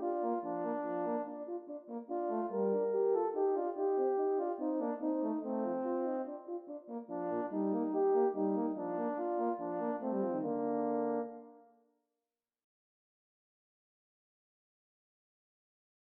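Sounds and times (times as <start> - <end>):
two horns playing duets in B flat major: 0.0 - 11.6.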